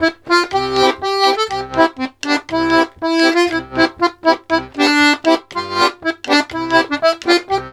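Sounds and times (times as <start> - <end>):
accordions playing polka: 0.0 - 7.7.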